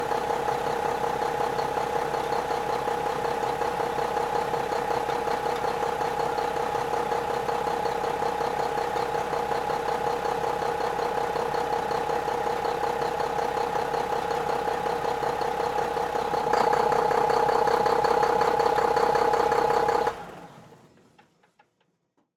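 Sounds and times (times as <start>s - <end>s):
Mac semi truck: 0.0s - 21.9s.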